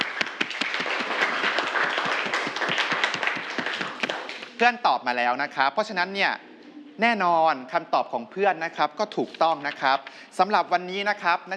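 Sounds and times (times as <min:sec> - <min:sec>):
students clapping: 0:00.0 - 0:04.6
speech: 0:04.6 - 0:11.5.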